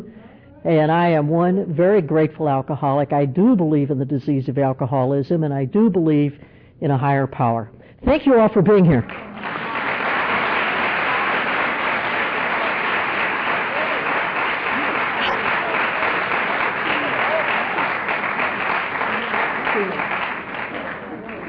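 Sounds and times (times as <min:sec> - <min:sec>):
speech: 0:00.6 - 0:09.3
audience applause: 0:09.0 - 0:21.4.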